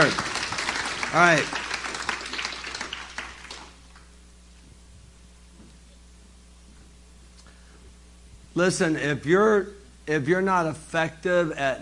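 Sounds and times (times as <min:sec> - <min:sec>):
speech: 0:00.0 - 0:00.3, 0:01.1 - 0:01.6, 0:08.6 - 0:11.7
audience clapping: 0:00.0 - 0:04.1.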